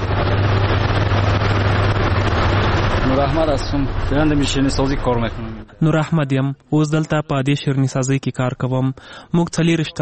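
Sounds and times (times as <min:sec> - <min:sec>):
sheerini sweets-making machine running in a sweets workshop: 0:00.0 - 0:05.8
speech: 0:03.2 - 0:09.9.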